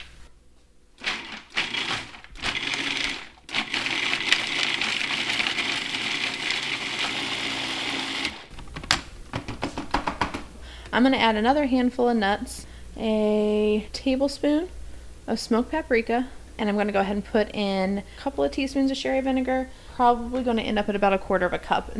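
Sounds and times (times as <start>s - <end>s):
blender grinding almonds for a roasted red pepper sauce: 1.0s - 8.8s
speech: 11.0s - 21.9s.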